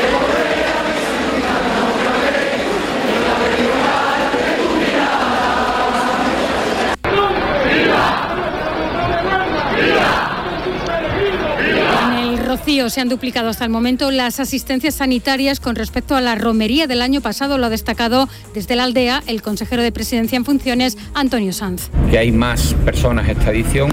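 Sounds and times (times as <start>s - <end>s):
crowd cheering and shouting at the presentation of brotherhoods, El Rocío pilgrimage: 0.0s - 13.6s
speech: 12.7s - 23.9s.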